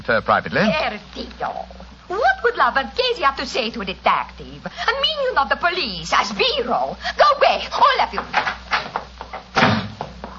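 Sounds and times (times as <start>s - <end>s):
speech: 0.0s - 8.6s
door slammed shut: 9.5s - 10.1s.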